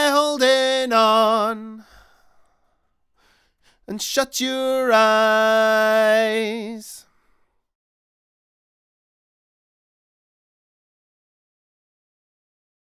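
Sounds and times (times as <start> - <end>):
raw lead vocal: 0.0 - 2.4, 3.7 - 7.2.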